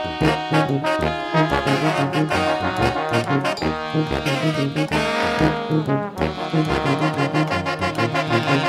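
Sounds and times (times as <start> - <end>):
tuba jam: 0.0 - 8.6.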